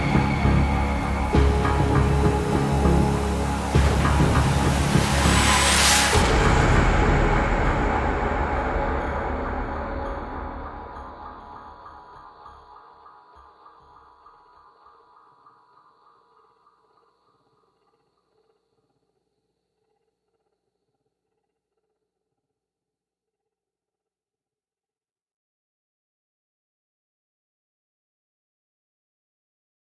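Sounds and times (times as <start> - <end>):
mounting synths: 0.0 - 18.5
percussion: 0.0 - 19.7.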